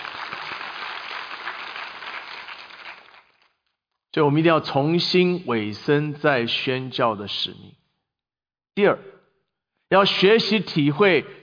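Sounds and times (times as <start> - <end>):
audience applauding: 0.0 - 3.6
speech: 4.2 - 7.8, 8.8 - 9.2, 9.9 - 11.4.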